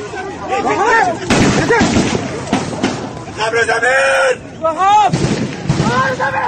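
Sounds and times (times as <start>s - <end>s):
frantic shouting and wailing voices: 0.0s - 2.0s, 3.3s - 6.4s
gunfire at a military parade: 1.3s - 3.1s, 5.1s - 6.2s.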